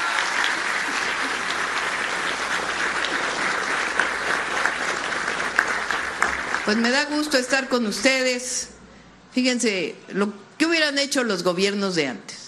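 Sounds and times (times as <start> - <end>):
audience applause: 0.0 - 7.0
speech: 6.7 - 8.7, 9.3 - 12.3.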